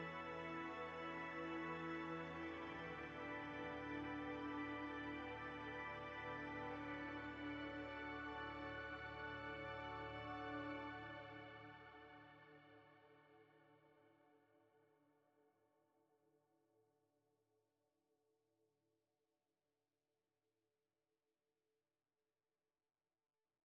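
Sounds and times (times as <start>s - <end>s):
desert music on organ at 70 bpm: 0.0s - 11.1s.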